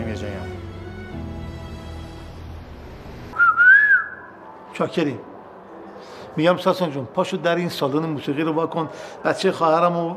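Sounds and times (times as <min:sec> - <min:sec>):
speech: 0:00.1 - 0:00.7, 0:04.8 - 0:05.3, 0:06.0 - 0:10.1
person whistling: 0:03.4 - 0:04.4.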